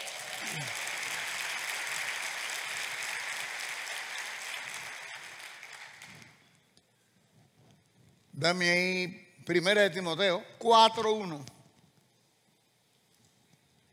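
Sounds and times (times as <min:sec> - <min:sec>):
audience applause: 0:00.0 - 0:06.5
speech: 0:08.4 - 0:11.5.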